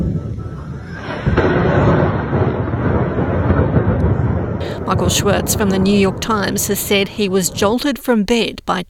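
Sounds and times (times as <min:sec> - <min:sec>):
explosions in a city: 0:01.1 - 0:07.9
speech: 0:04.9 - 0:08.8.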